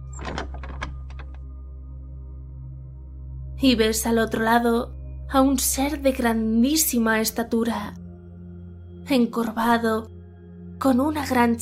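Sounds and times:
door opening with latch clacks: 0:00.1 - 0:01.4
speech: 0:03.6 - 0:08.0, 0:09.1 - 0:10.2, 0:10.8 - 0:11.6.

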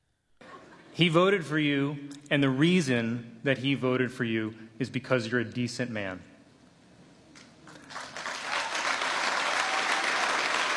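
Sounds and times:
speech: 0:01.0 - 0:06.3
White House press correspondents applauding: 0:07.6 - 0:10.7.

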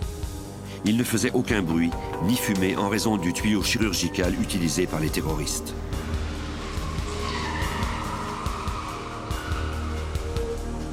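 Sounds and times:
speech: 0:00.8 - 0:06.1
car engine roaring: 0:05.0 - 0:10.9
car tires squealing while speeding away: 0:05.1 - 0:10.9.

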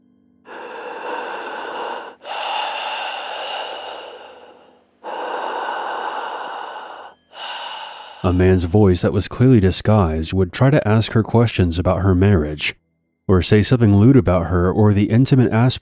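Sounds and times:
heavy breathing over a phone line: 0:00.5 - 0:09.0
speech: 0:08.2 - 0:15.8.

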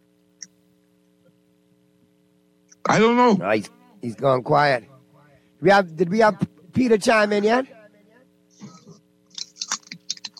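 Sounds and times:
faint steady hum: 0:00.0 - 0:10.3
speech: 0:02.8 - 0:04.9, 0:05.6 - 0:07.8
chips being chewed loudly: 0:09.3 - 0:10.3.

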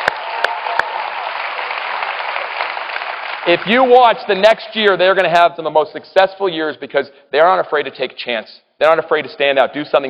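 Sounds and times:
crowd applauding: 0:00.0 - 0:04.3
speech: 0:03.4 - 0:10.0.

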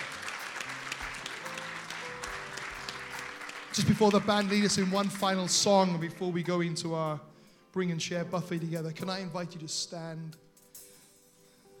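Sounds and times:
audience applause: 0:00.0 - 0:05.5
speech: 0:03.8 - 0:10.5.

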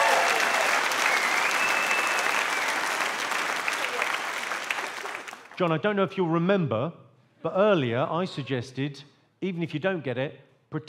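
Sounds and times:
round of applause from audience: 0:00.0 - 0:05.6
speech: 0:05.6 - 0:10.8.

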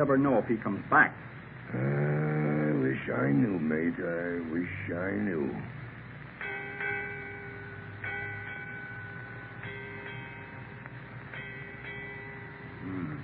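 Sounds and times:
speech: 0:00.0 - 0:02.3, 0:03.0 - 0:05.8
ship's bell striking eight bells: 0:06.4 - 0:13.2.

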